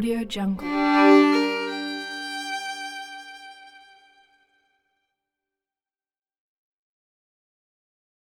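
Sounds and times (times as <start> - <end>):
cinematic classic violin: 0.6 - 4.4.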